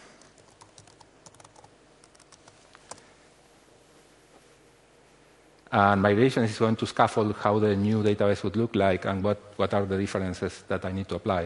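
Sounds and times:
computer keyboard typing during a software demo: 0:00.2 - 0:03.0
speech: 0:05.7 - 0:11.4.

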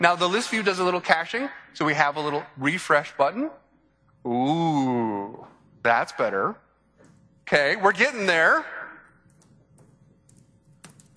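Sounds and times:
speech: 0:00.0 - 0:03.6, 0:04.2 - 0:06.6, 0:07.5 - 0:08.8
typing on a computer keyboard: 0:09.2 - 0:11.1.

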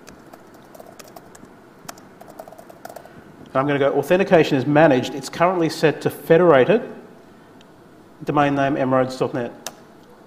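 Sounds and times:
typing a command on a computer keyboard: 0:00.0 - 0:03.1
speech: 0:03.6 - 0:07.0, 0:08.2 - 0:09.6.

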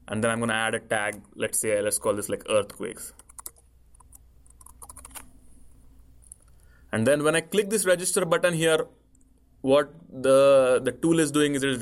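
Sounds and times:
soft hiss: 0:00.0 - 0:11.8
speech: 0:00.1 - 0:03.2, 0:06.9 - 0:09.0, 0:09.6 - 0:11.8
fingers typing an email address on a computer keyboard: 0:03.1 - 0:05.4.

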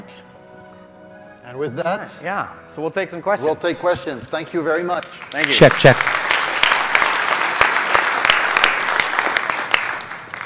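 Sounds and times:
speech: 0:00.1 - 0:00.3, 0:01.5 - 0:06.1
audience clapping: 0:04.7 - 0:10.4.

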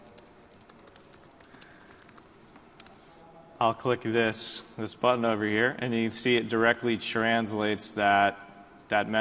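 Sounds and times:
typing a message on a computer keyboard: 0:00.0 - 0:02.9
speech: 0:03.6 - 0:09.1.

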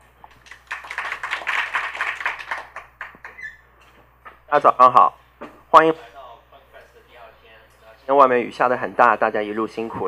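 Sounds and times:
audience applause: 0:00.4 - 0:03.2
speech: 0:04.5 - 0:06.1, 0:08.1 - 0:10.0.

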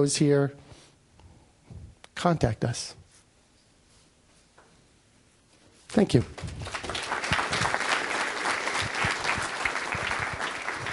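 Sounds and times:
speech: 0:00.0 - 0:00.6, 0:02.2 - 0:03.0, 0:05.9 - 0:06.8
conference audience applause: 0:06.6 - 0:10.9.

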